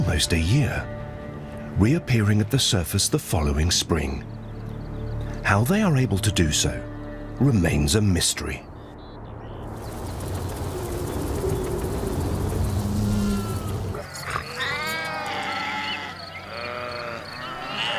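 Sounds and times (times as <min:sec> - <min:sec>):
speech: 0:00.1 - 0:01.0, 0:01.8 - 0:04.4, 0:05.4 - 0:08.7
low hum: 0:09.9 - 0:14.0
sheep bleating: 0:14.2 - 0:17.9.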